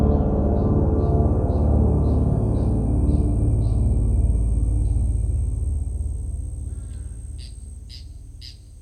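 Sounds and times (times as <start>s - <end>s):
crickets: 0.1s - 8.8s.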